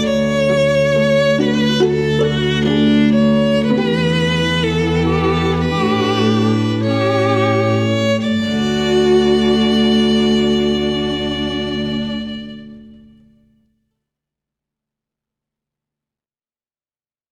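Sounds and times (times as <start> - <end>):
string quartet: 0.0 - 13.3.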